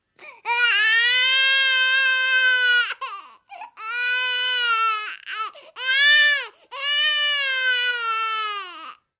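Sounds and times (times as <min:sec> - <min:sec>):
baby crying: 0:00.2 - 0:09.0.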